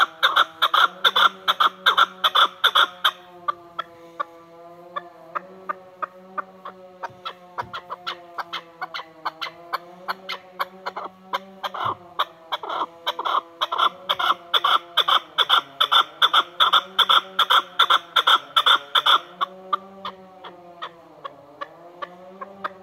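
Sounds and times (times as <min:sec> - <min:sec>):
mountain partridge calling: 0:00.0 - 0:03.2, 0:06.0 - 0:20.2.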